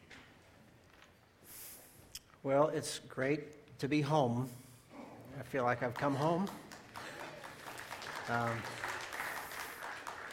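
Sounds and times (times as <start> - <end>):
speech: 2.4 - 4.7, 5.4 - 6.6, 8.3 - 8.8
audience clapping: 5.5 - 10.3.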